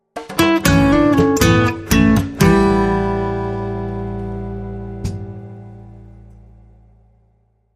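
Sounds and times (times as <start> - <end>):
childish mambo music: 0.0 - 6.6.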